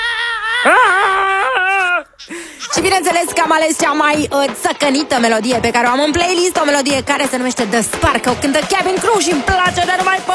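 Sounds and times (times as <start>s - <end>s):
cartoon minion character screaming: 0.0s - 2.4s
speech: 0.6s - 0.9s, 2.7s - 10.3s
laughter: 0.6s - 3.5s.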